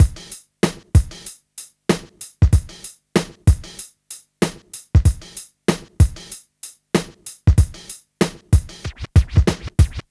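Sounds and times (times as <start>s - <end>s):
R&B drums: 0.0s - 6.4s, 7.0s - 10.0s.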